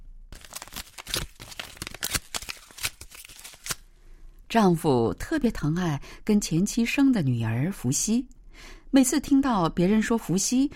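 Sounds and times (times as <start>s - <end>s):
photo being torn up: 0.4s - 3.9s
speech: 4.5s - 10.7s.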